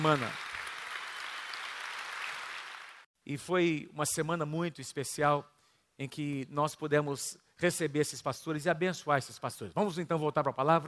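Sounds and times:
speech: 0.0s - 0.4s, 3.3s - 10.8s
audience applause: 0.0s - 3.0s.

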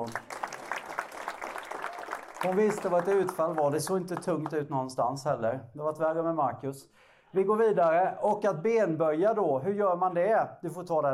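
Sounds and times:
speech: 0.0s - 0.3s, 2.4s - 11.1s
audience applause: 0.0s - 4.5s.

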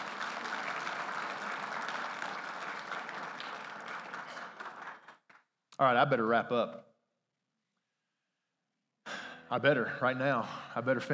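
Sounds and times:
church congregation applauding: 0.0s - 5.5s
speech: 5.8s - 6.9s, 9.5s - 11.1s.

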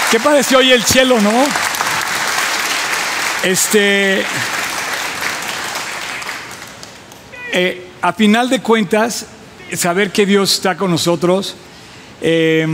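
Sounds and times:
audience applause: 0.0s - 7.2s
speech: 0.1s - 1.6s, 3.4s - 4.6s, 7.5s - 12.7s.

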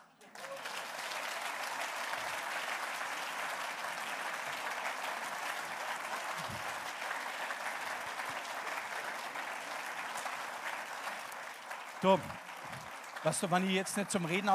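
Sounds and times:
audience applause: 0.0s - 14.5s
speech: 12.0s - 12.4s, 13.2s - 14.5s.

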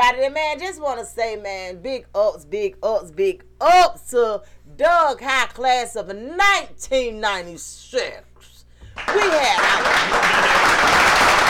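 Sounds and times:
speech: 0.2s - 8.3s, 9.0s - 11.4s
round of applause: 9.0s - 11.4s.

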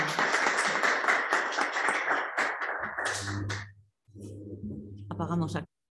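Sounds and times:
applause: 0.0s - 3.7s
speech: 5.2s - 5.7s.

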